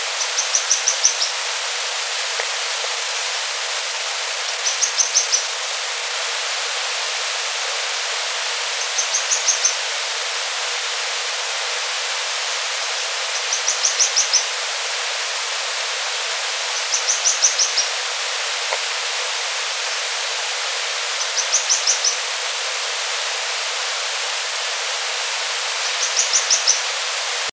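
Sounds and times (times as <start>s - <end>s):
hiss: 0.0s - 27.5s
bird chirping: 0.2s - 1.4s, 4.5s - 5.5s, 8.8s - 9.8s, 13.4s - 14.5s, 16.8s - 18.0s, 21.2s - 22.2s, 25.8s - 26.9s.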